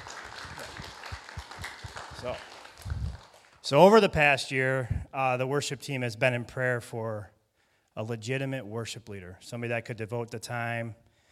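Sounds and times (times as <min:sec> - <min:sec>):
church audience applause: 0:00.0 - 0:03.6
speech: 0:02.2 - 0:02.5, 0:03.7 - 0:07.4, 0:08.0 - 0:11.0.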